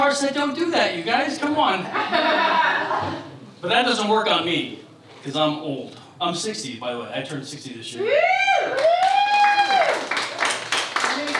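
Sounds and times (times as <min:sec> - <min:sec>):
speech: 0:00.1 - 0:09.0
laughter: 0:01.8 - 0:03.4
audience clapping: 0:08.7 - 0:11.3.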